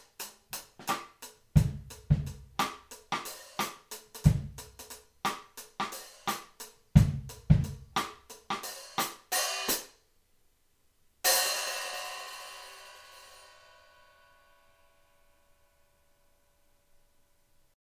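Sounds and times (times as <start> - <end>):
hi-hat: 0.0 - 9.9.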